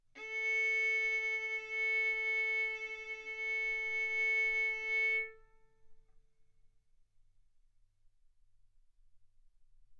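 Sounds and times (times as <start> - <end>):
violin bowed mezzo-forte on the A string, A4 and B4: 0.2 - 5.6.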